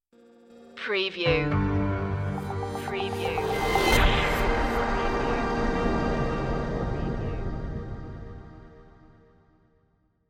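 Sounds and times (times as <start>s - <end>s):
descant music stinger: 1.5s - 9.4s.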